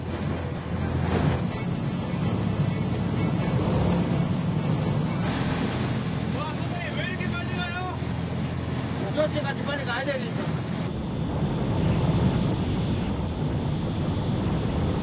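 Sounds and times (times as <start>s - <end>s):
rough sea waves crashing around a speeding boat: 0.0s - 15.0s
wind buffeting the microphone: 0.0s - 15.0s.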